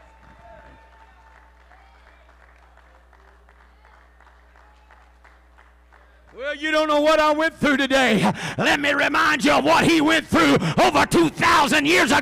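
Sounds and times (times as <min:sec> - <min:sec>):
audience clapping: 0:00.0 - 0:06.6
speech: 0:06.4 - 0:12.2.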